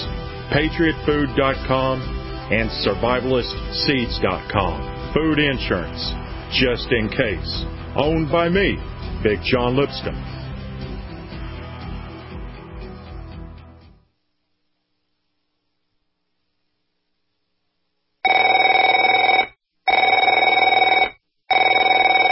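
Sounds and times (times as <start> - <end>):
speech: 0.5 - 10.4
telephone ringing: 18.2 - 22.2.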